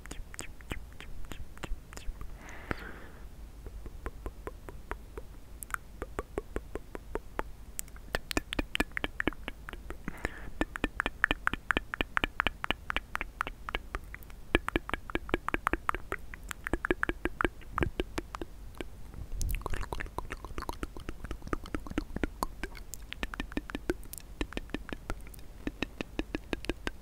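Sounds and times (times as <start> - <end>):
wet mouth clicks, smacks and pops: 0.0 - 2.8, 3.6 - 27.0
breathy hiss: 2.2 - 3.4, 9.9 - 10.8.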